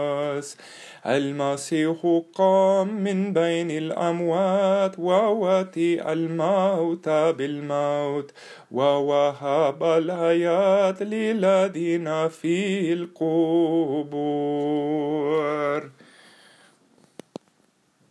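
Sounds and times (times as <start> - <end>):
Easter hymn sung in English, Greek and Arabic: 0.0 - 16.0.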